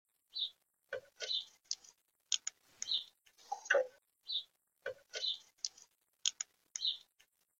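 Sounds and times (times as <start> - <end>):
bird chirps: 0.3 - 1.8, 2.8 - 7.1
dry clicking and tapping: 4.9 - 7.3.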